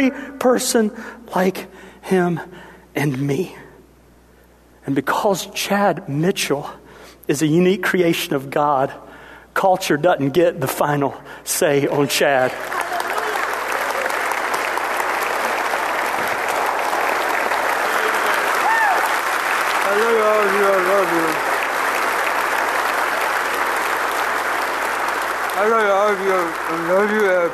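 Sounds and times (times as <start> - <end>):
speech: 0.0 - 3.6, 4.8 - 12.9, 25.6 - 27.5
audience clapping: 11.9 - 27.5.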